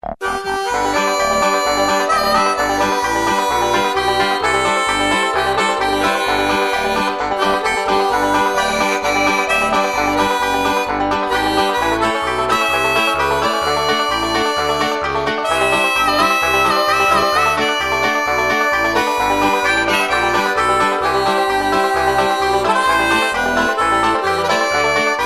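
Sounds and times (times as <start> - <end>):
bluegrass variation: 0.0 - 25.2.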